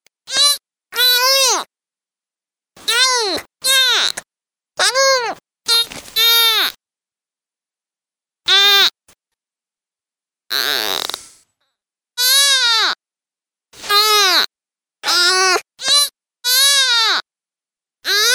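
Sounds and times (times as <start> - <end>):
deer fawn distress calls, loud harsh bleats: 0.3 - 1.7, 2.8 - 4.2, 4.8 - 6.8, 8.5 - 8.9, 12.2 - 13.0, 13.8 - 17.2.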